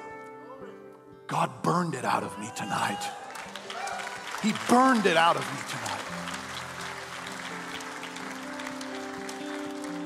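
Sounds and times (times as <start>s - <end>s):
speech: 1.3s - 3.2s, 4.4s - 6.0s
audience clapping: 2.8s - 10.0s.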